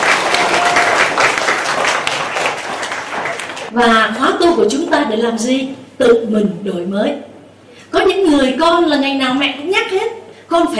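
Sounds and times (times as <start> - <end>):
children applauding: 0.0 - 3.7
speech: 3.8 - 7.3, 7.9 - 10.7.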